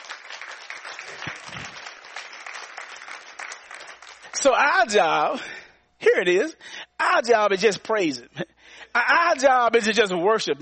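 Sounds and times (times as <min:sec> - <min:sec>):
audience clapping: 0:00.0 - 0:04.8
speech: 0:04.4 - 0:10.5.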